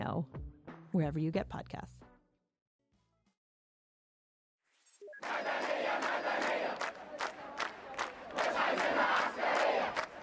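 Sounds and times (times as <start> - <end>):
speech: 0.2 - 2.1
thousands of activists chanting in unison in Cairo's Tahrir Square: 5.1 - 10.2.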